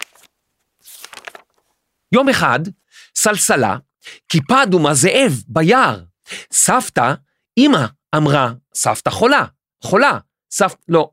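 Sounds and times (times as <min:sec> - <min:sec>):
book pages rustling as a book is opened: 0:00.0 - 0:01.8
speech: 0:02.1 - 0:11.1.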